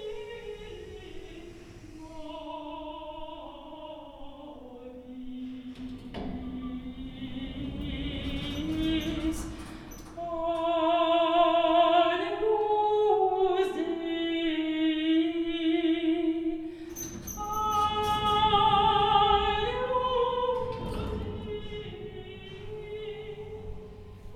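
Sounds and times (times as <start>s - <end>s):
opera singer singing inside an elevator: 0.0s - 24.3s
clattering and rattling: 5.6s - 11.3s, 16.9s - 24.3s.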